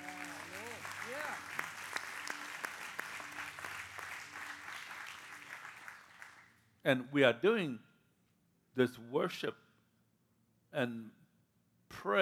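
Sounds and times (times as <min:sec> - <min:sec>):
audience applause: 0:00.0 - 0:06.5
speech: 0:06.8 - 0:07.9, 0:08.8 - 0:09.6, 0:10.8 - 0:11.2, 0:11.9 - 0:12.2.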